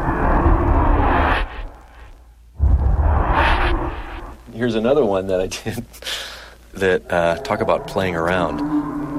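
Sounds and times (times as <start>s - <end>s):
whoosh transition sound effects: 0.0s - 1.8s, 2.6s - 4.4s
speech: 4.6s - 9.0s.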